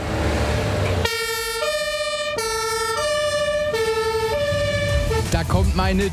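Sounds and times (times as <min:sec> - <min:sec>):
fire engine rumble: 0:00.0 - 0:06.1
fire engine two-tone siren: 0:00.8 - 0:05.4
speech: 0:05.6 - 0:06.1.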